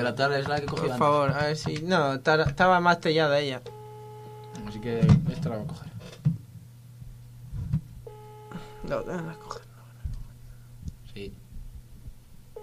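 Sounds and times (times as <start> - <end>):
speech: 0.0 - 3.8, 4.6 - 6.2, 8.8 - 9.7, 11.2 - 11.4
telephone ringing tone, call unanswered: 3.7 - 5.0, 8.1 - 9.6.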